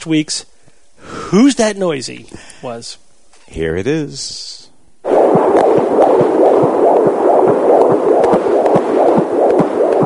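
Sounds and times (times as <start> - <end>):
speech: 0.0 - 0.5, 1.3 - 4.7
constant hiss: 0.0 - 10.0
baby's heartbeat on a Doppler fetal heart monitor during pregnancy: 5.0 - 10.0.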